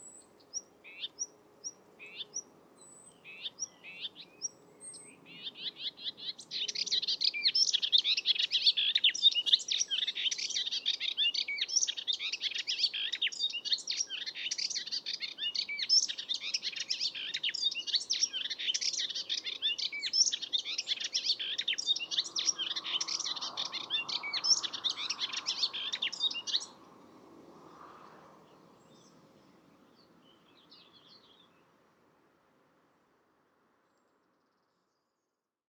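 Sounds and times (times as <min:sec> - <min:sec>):
Hippolais polyglotta singing: 0:00.0 - 0:26.8.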